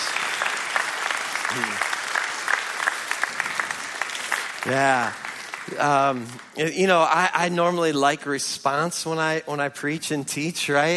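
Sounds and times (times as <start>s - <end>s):
audience applause: 0.0s - 6.7s
speech: 1.5s - 1.9s, 4.6s - 10.9s.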